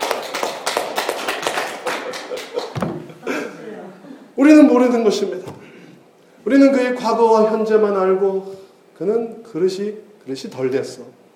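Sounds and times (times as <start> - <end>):
congregation clapping during a church sermon: 0.0 - 3.0
laughter: 1.8 - 4.3
speech: 4.4 - 5.6, 6.5 - 11.2.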